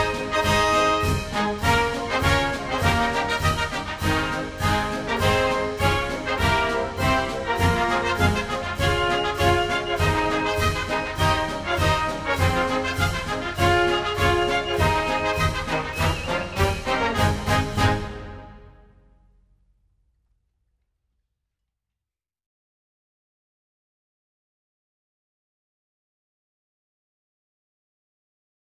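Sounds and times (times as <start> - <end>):
national anthem music: 0.0 - 19.1.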